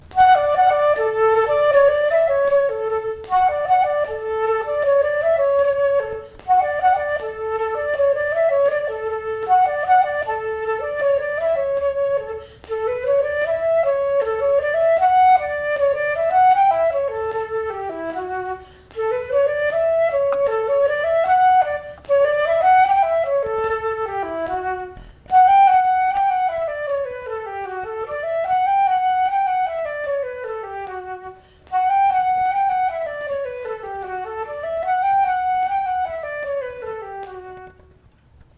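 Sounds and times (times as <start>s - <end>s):
Swedish engelska folk dance melody second part: 0.0s - 38.5s.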